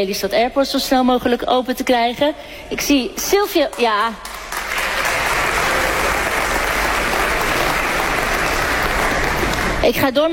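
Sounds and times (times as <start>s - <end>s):
speech: 0.0s - 4.5s, 9.8s - 10.3s
crowd applauding: 3.9s - 9.8s.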